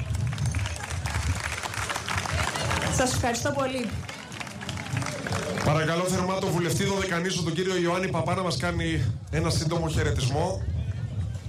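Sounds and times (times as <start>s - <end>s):
crowd applause at a youth tournament ceremony: 0.0s - 6.7s
low crowd rumble: 0.0s - 11.4s
speech: 3.0s - 4.1s, 5.7s - 10.7s.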